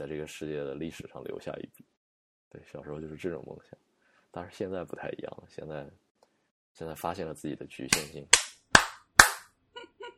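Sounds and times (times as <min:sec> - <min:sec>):
speech: 0:00.0 - 0:01.9, 0:02.5 - 0:06.0, 0:06.8 - 0:08.4
hand clapping: 0:07.9 - 0:09.5.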